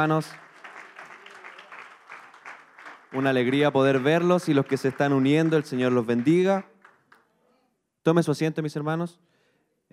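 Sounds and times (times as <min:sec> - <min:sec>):
speech: 0:00.0 - 0:00.4, 0:03.1 - 0:06.7, 0:08.0 - 0:09.3
audience clapping: 0:00.0 - 0:07.3.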